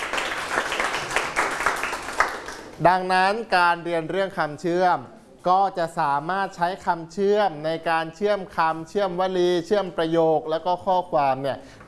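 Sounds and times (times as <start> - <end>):
applause, clapping hands: 0.0 - 2.8
speech: 2.8 - 11.8.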